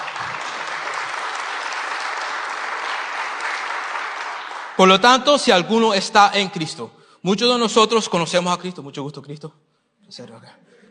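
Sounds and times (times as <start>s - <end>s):
audience applause: 0.0s - 5.4s
speech: 4.8s - 10.7s.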